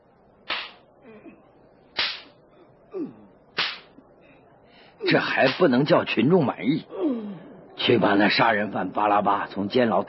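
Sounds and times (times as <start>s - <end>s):
whip lashes striking a body: 0.5s - 0.8s, 2.0s - 2.3s, 3.6s - 3.9s
speech: 5.0s - 7.0s, 7.9s - 10.0s.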